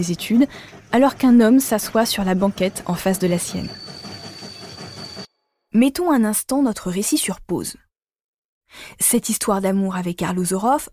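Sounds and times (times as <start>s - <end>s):
speech: 0.0s - 3.9s, 5.8s - 7.8s, 8.7s - 10.9s
train wheels clattering on rails: 0.0s - 5.3s.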